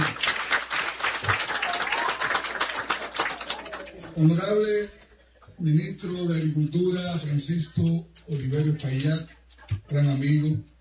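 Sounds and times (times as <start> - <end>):
audience applause: 0.0 - 4.4
speech: 4.2 - 5.0, 5.6 - 10.7.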